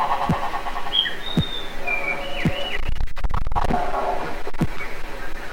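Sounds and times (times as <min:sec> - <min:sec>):
drum machine: 0:00.2 - 0:01.8, 0:02.4 - 0:03.8, 0:04.4 - 0:04.8.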